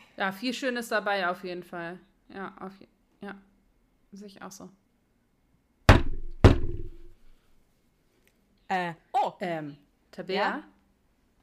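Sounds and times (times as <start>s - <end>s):
speech: 0.2s - 3.5s, 4.1s - 4.8s, 8.7s - 10.7s
knocks inside a refrigerator: 5.9s - 7.2s.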